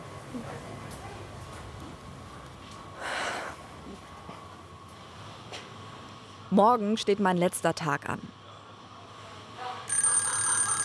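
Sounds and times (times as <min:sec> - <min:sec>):
speech: 0:06.5 - 0:08.4
alarm clock ringing: 0:09.9 - 0:10.8.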